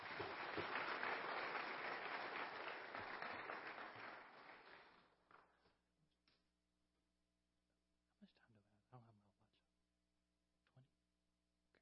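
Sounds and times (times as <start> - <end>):
audience clapping: 0.0 - 5.7.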